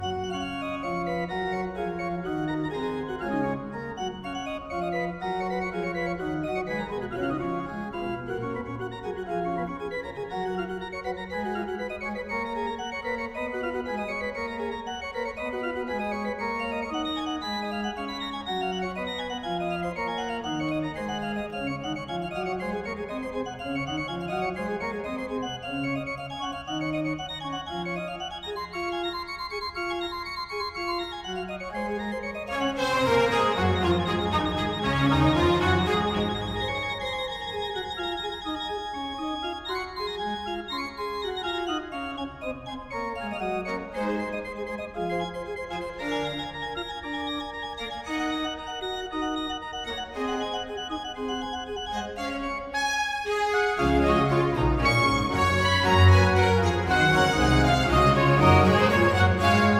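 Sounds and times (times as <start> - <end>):
organ concerto: 0.0 - 59.7.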